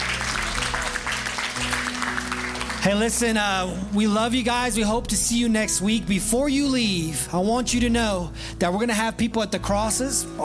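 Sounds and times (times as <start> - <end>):
audience clapping hands: 0.0 - 3.8
speech: 2.8 - 10.4.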